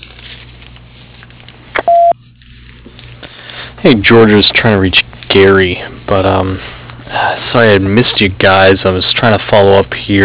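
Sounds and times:
answering machine beep: 0:01.8 - 0:02.2
speech: 0:03.8 - 0:10.2.

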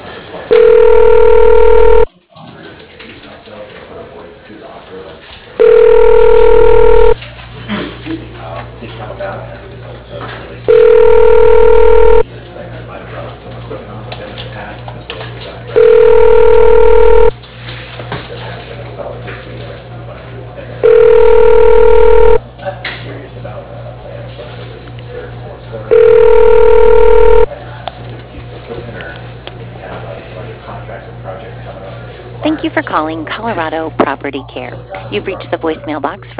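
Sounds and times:
telephone ringback tone while a call is transferred: 0:00.5 - 0:02.1, 0:05.6 - 0:07.2, 0:10.7 - 0:12.2, 0:15.8 - 0:17.3, 0:20.8 - 0:22.4, 0:25.9 - 0:27.5
speech: 0:00.8 - 0:02.1, 0:32.9 - 0:36.3.

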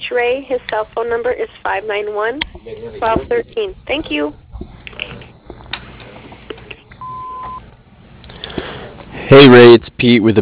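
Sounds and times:
speech: 0:00.1 - 0:04.4, 0:09.3 - 0:10.3
answering machine beep: 0:07.0 - 0:07.6.

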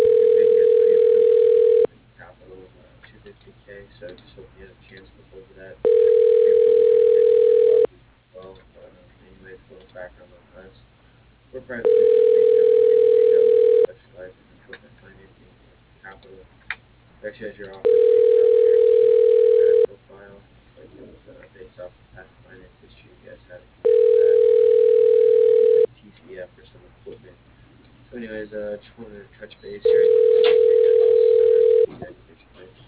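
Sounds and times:
telephone ringback tone: 0:00.0 - 0:01.9, 0:05.8 - 0:07.9, 0:11.8 - 0:13.9, 0:17.8 - 0:19.9, 0:23.8 - 0:25.9, 0:29.9 - 0:31.9.

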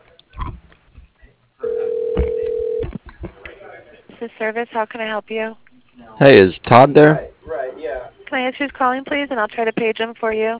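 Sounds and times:
company phone system ringing tone during a call transfer: 0:01.6 - 0:02.8
speech: 0:04.2 - 0:05.6, 0:06.2 - 0:07.3, 0:08.3 - 0:10.5.

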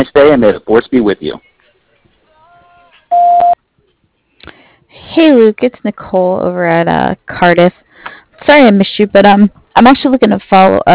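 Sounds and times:
speech: 0:00.0 - 0:01.5, 0:05.2 - 0:07.8, 0:08.4 - 0:10.9
answering-machine electronic beep tone: 0:03.1 - 0:03.6.

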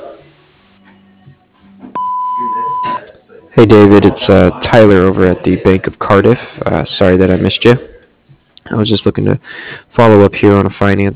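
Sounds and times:
voicemail recording tone beep: 0:02.0 - 0:03.0
speech: 0:03.6 - 0:07.9, 0:08.7 - 0:11.1.

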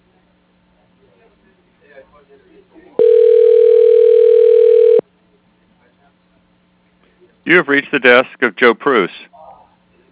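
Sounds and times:
speech: 0:02.0 - 0:03.6, 0:07.5 - 0:09.3
electronic telephone tone on a call placed to voicemail: 0:03.0 - 0:05.0.

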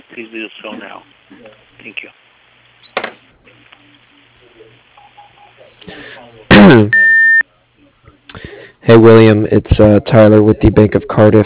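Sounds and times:
speech: 0:00.2 - 0:02.2, 0:05.8 - 0:07.1, 0:08.9 - 0:11.4
loud steady high-pitched answering machine beep: 0:06.9 - 0:07.4.

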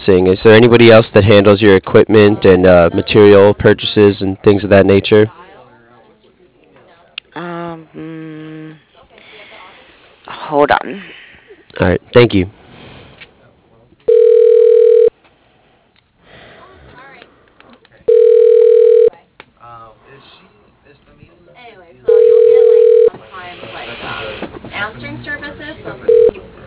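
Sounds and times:
speech: 0:00.1 - 0:05.4, 0:07.4 - 0:08.4, 0:10.5 - 0:12.6
telephone ringing unanswered: 0:14.1 - 0:15.1, 0:18.1 - 0:19.1, 0:22.1 - 0:23.1, 0:26.1 - 0:26.4.

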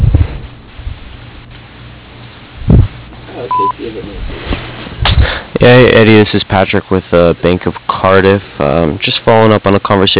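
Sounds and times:
voicemail message tone: 0:03.3 - 0:04.1
speech: 0:03.5 - 0:04.6, 0:05.6 - 0:10.1.

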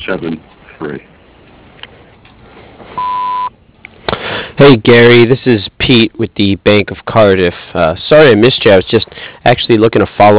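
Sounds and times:
faint hiss: 0:00.0 - 0:10.3
speech: 0:00.1 - 0:01.1, 0:04.6 - 0:10.3
voicemail beep tone: 0:03.0 - 0:03.6.

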